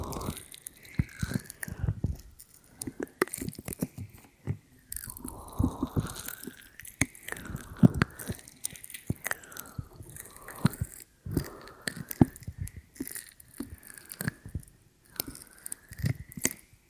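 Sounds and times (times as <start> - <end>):
ear cleaning crackling and scratchy clicks: 0.0 - 14.5.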